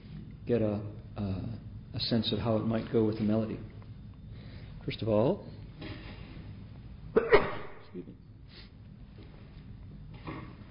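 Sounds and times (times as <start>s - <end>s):
speech: 0.5s - 3.7s, 4.8s - 5.9s
quiet breathing: 4.2s - 6.7s, 8.4s - 9.6s
person sneezing into a microphone: 7.2s - 7.8s
person sniffing: 8.5s - 8.8s.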